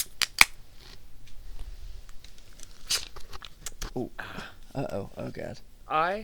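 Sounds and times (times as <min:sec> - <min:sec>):
beer cans cracked open for a toast: 0:00.0 - 0:01.0, 0:02.5 - 0:04.0
speech: 0:04.0 - 0:06.2.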